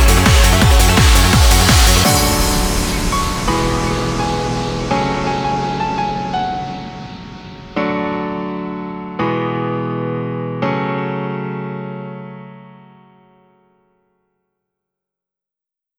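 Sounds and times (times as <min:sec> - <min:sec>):
instrumental music: 0:00.0 - 0:12.4.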